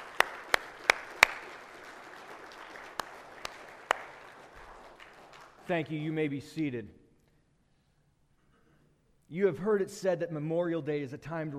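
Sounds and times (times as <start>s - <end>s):
audience applause: 0.0s - 5.7s
speech: 5.7s - 7.0s, 9.3s - 11.5s.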